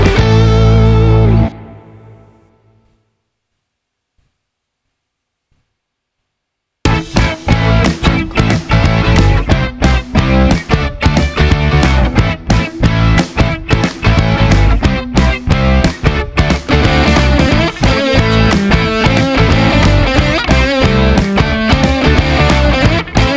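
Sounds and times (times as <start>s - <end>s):
cheerful rock music: 0.0s - 1.8s, 6.9s - 23.3s.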